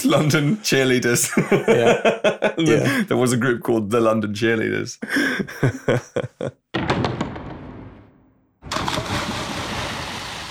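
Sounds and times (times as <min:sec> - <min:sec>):
speech: 0:00.0 - 0:07.0
laughter: 0:01.1 - 0:03.1, 0:05.0 - 0:06.6
diving board thumps in a sound effect: 0:06.8 - 0:09.4
big splash from diving off a diving board: 0:08.6 - 0:10.4.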